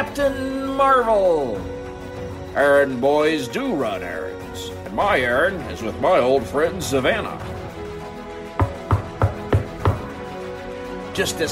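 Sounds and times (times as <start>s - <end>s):
speech: 0.0s - 1.8s, 2.6s - 7.5s, 11.2s - 11.5s
knocking on a door: 8.6s - 10.2s.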